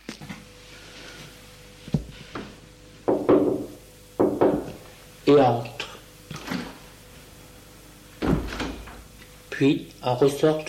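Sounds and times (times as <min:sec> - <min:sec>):
maid knocking on a glass door in the hall: 0:03.1 - 0:04.8
speech: 0:05.3 - 0:05.7, 0:09.6 - 0:10.6.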